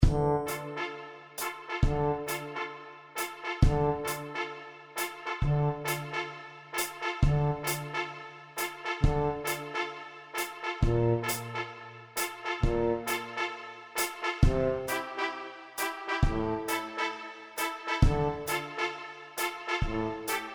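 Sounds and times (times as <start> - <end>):
trumpet: 0.0 - 20.5
tuba: 0.0 - 20.5.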